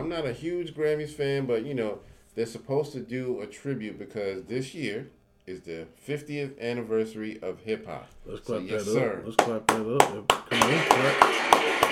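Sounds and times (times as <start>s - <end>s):
speech: 0.1s - 11.6s
clapping: 9.4s - 11.9s.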